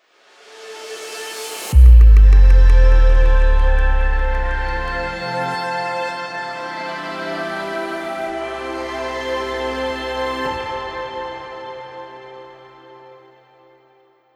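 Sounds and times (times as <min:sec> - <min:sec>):
corporate transition music: 0:01.8 - 0:05.4.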